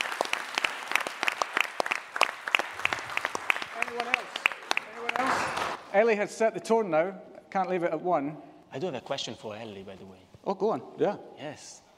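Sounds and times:
round of applause from a small group: 0.0s - 5.8s
speech: 6.0s - 11.8s.

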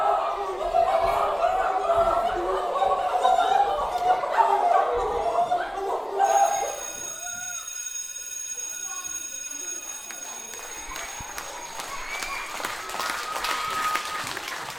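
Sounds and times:
faint crowd murmur: 0.0s - 14.7s
audience applause after a show: 9.7s - 14.7s.

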